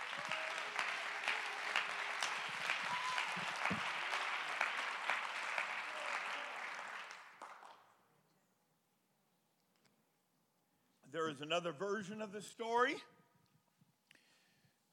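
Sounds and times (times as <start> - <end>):
audience clapping hands: 0.0 - 8.0
speech: 11.2 - 13.1.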